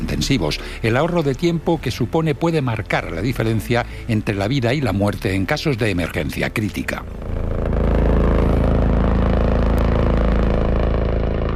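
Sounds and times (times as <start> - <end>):
speech: 0.3 - 7.4
Gigante 3 helicopter engine running: 7.0 - 11.5.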